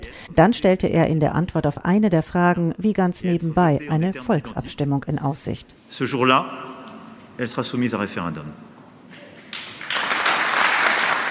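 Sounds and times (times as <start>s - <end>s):
speech: 0.3s - 6.7s, 7.4s - 8.7s
applause: 9.4s - 11.2s.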